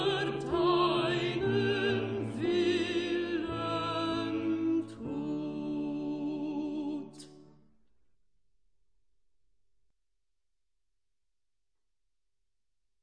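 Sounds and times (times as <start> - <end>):
soprano singing: 0.0 - 7.4.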